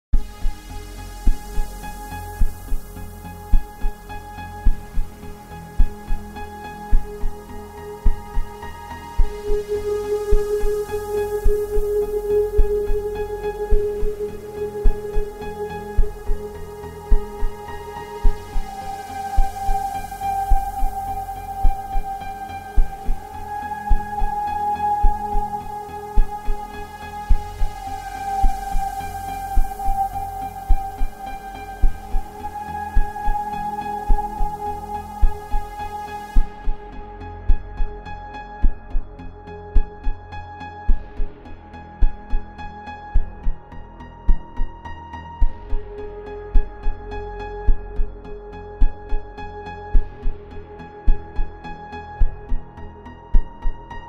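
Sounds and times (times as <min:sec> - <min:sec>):
royalty free music: 0:00.1 - 0:54.0.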